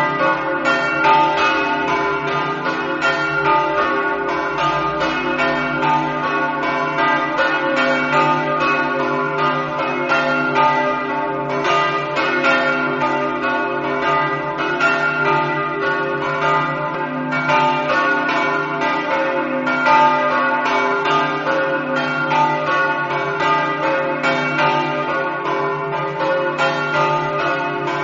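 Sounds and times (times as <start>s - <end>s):
church bells ringing in Buttrio: 0.0s - 28.0s.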